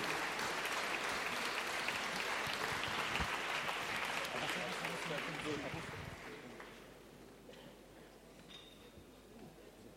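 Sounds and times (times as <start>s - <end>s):
audience applause: 0.0s - 6.8s.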